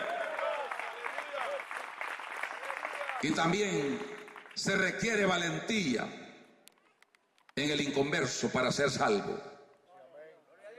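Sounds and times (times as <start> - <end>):
audience applauding: 0.0 - 4.9
speech: 3.2 - 6.2, 7.6 - 9.5.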